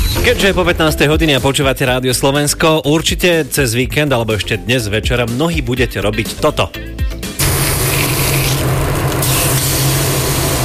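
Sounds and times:
speech: 0.2 - 7.1
meat sizzling on a grill: 7.4 - 10.6.

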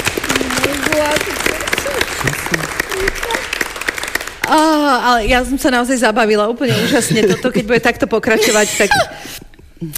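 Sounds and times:
applause: 0.0 - 4.8
speech: 2.2 - 3.4, 4.5 - 9.9.

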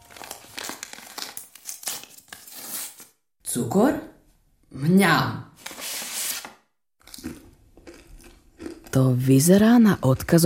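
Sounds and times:
pale blue paper envelope crinkling and tearing as it is opened: 0.0 - 3.2, 5.6 - 6.6
speech: 3.6 - 4.1, 4.7 - 5.4, 9.0 - 10.4.

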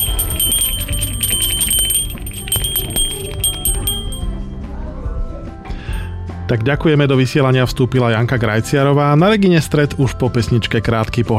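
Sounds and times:
small bell rung to mark a finished task: 0.0 - 4.4, 5.9 - 6.1
speech: 6.5 - 11.3.

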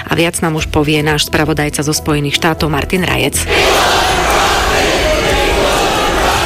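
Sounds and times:
speech: 0.2 - 4.7
hundreds of protesters shouting during a county commissioners meeting: 3.5 - 6.4.

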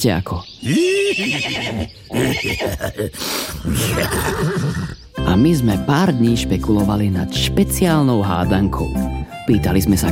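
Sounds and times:
speech: 0.0 - 10.1
horse neighing: 0.6 - 5.1.

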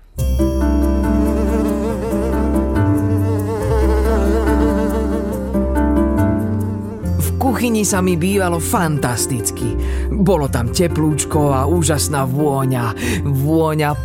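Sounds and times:
housefly buzzing: 0.8 - 7.4
speech: 7.6 - 14.0.

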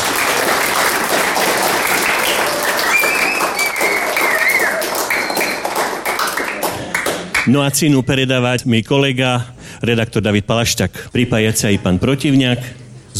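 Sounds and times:
audience applause: 0.0 - 7.5
speech: 7.5 - 13.1.

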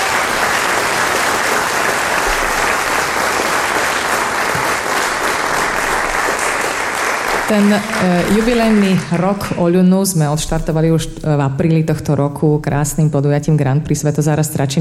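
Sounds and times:
large audience applause: 0.0 - 9.6
speech: 7.5 - 14.7.

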